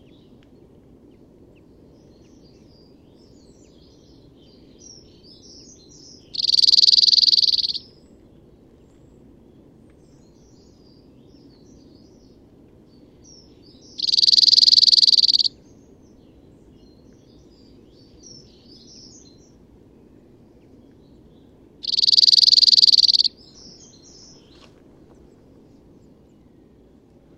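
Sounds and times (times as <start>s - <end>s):
Cirl Bunting singing dry flat trills: 6.4s - 7.8s, 14.0s - 15.5s, 21.8s - 23.4s.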